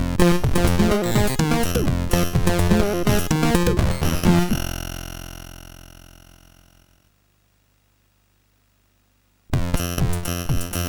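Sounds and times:
main tune on a MOS6581R4 sound chip: 0:00.0 - 0:05.0, 0:09.6 - 0:10.8.

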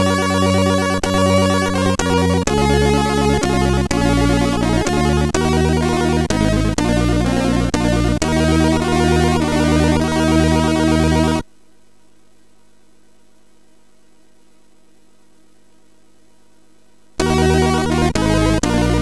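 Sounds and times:
folk tune on MOS6581R4 sound chip: 0:00.0 - 0:11.4, 0:17.2 - 0:19.0.

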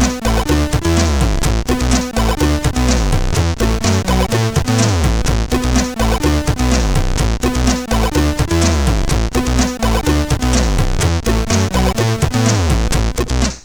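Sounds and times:
chiptune on a SID 8580R5 sound chip: 0:00.0 - 0:13.5.

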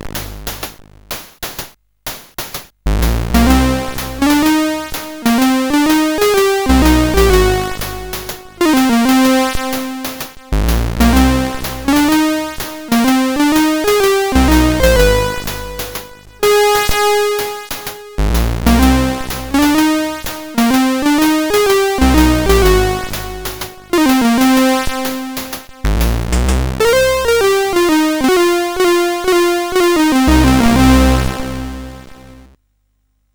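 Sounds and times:
chiptune theme on a CSG8580R5 sound chip: 0:03.0 - 0:32.5.

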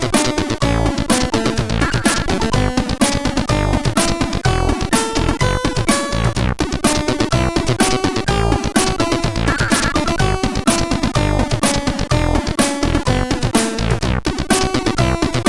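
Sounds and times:
intro music on a sid CSG8580R5 chip: 0:00.0 - 0:15.4.

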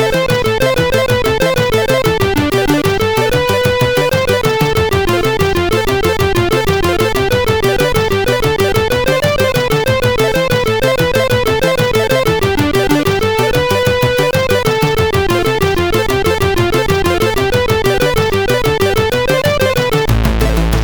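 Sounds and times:
SID CSG8580R5 chip music: 0:00.0 - 0:20.8.

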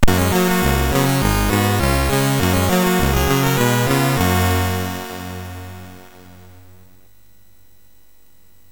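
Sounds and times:
chiptune game music on MOS6581R3 chip: 0:00.0 - 0:06.9.

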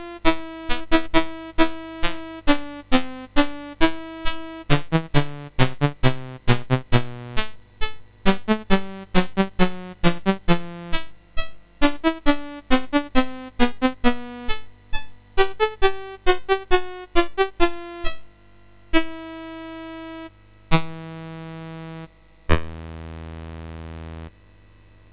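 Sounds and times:
chiptune music on a MOS6581R4 chip: 0:00.0 - 0:18.3.

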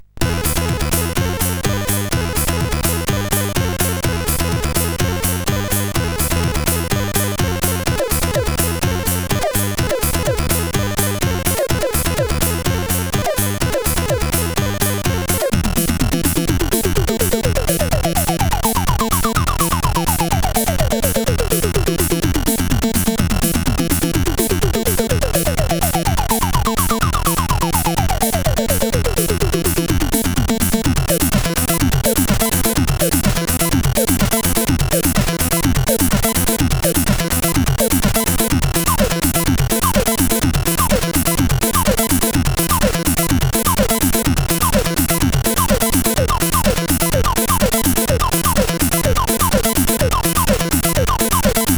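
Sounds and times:
crazy techno on SID CSG8580R5: 0:00.2 - 0:51.7.

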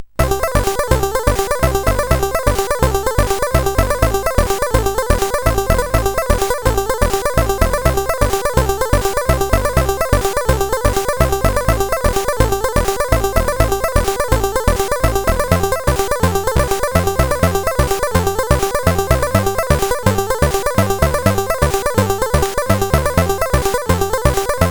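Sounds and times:
beat on a CSG8580R5 chip: 0:00.2 - 0:24.6.

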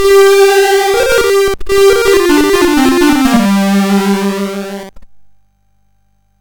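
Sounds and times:
MOS 6581 SID chip game music: 0:00.0 - 0:04.9.

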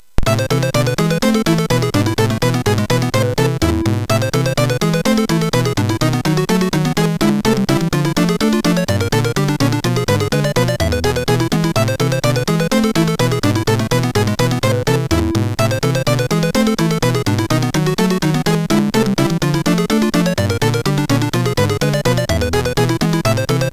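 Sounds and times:
classical music on MOS6581 sound chip: 0:00.2 - 0:23.7.

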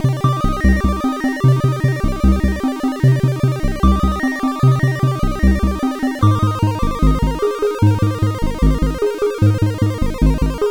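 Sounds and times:
chiptune music on CSG8580R5 sound chip: 0:00.1 - 0:10.6.

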